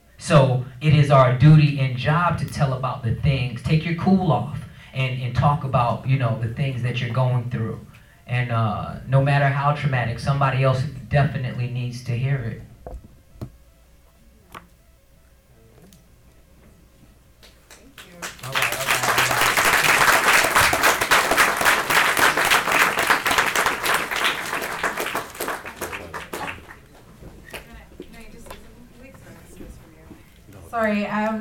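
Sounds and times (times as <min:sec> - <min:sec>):
speech: 0:00.2 - 0:13.0
audience applause: 0:18.0 - 0:27.0.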